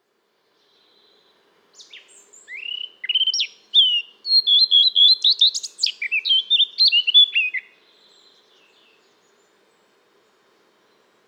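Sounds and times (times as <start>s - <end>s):
Eurasian blackcap singing: 0.6s - 9.6s.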